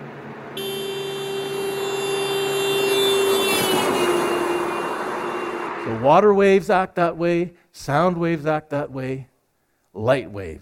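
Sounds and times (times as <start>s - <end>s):
vehicle roaring past with Doppler pitch shift: 0.0s - 6.2s
speech: 6.0s - 9.3s, 10.0s - 10.5s.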